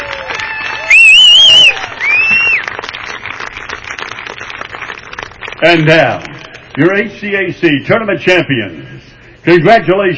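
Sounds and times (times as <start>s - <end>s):
audience applause: 0.0s - 6.3s
speech: 5.6s - 10.1s.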